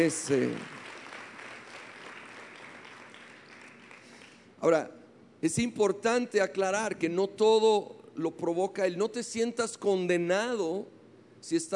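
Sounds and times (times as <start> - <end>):
speech: 0.0 - 0.8, 4.6 - 11.7
audience applause: 0.0 - 4.5.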